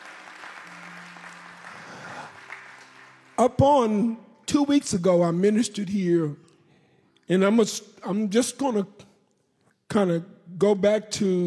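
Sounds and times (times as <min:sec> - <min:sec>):
crowd hand clapping: 0:00.0 - 0:04.1
speech: 0:03.4 - 0:06.4, 0:07.3 - 0:09.0, 0:09.9 - 0:11.4.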